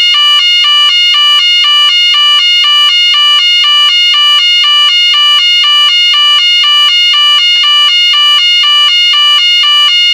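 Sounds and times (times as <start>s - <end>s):
two-tone siren at 588 Hz and 714 Hz: 0.0s - 10.1s.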